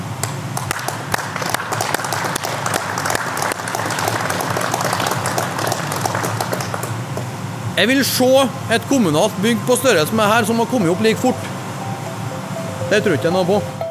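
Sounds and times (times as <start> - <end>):
audience applause: 0.6 - 7.3
speech: 7.8 - 11.5, 12.9 - 13.7.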